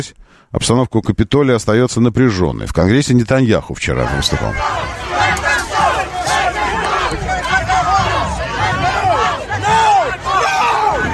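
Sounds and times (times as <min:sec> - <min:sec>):
speech: 0:00.0 - 0:05.4
protest crowd shouting and chanting: 0:03.9 - 0:11.1
sharp individual yells: 0:04.0 - 0:11.1.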